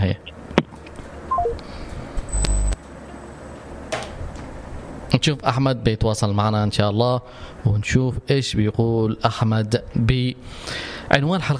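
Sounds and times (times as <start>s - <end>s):
speech: 0.0s - 0.4s, 5.2s - 11.5s
telephone number being dialed: 1.3s - 1.6s, 2.3s - 2.8s
quiet telephone line noise: 2.3s - 2.8s.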